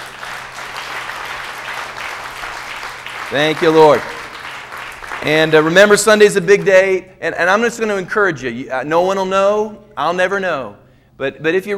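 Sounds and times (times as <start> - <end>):
audience clapping hands: 0.0 - 6.8
speech: 3.3 - 4.2, 5.2 - 11.7.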